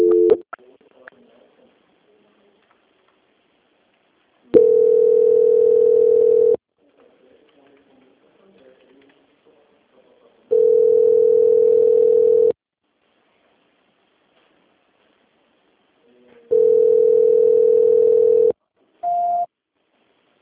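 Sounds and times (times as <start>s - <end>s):
telephone tones while a call is being transferred: 0.0s - 0.4s, 4.6s - 6.6s, 10.5s - 12.6s, 16.5s - 19.5s.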